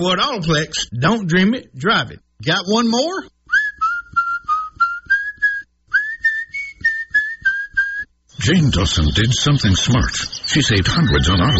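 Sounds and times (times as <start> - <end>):
speech: 0.0 - 3.4, 8.4 - 11.5
person whistling: 3.5 - 8.1.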